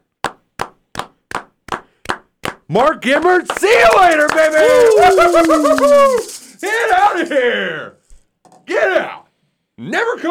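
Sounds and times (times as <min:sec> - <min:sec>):
speech: 0:02.7 - 0:08.0, 0:08.7 - 0:09.2, 0:09.8 - 0:10.2
audience round of applause: 0:03.4 - 0:07.2.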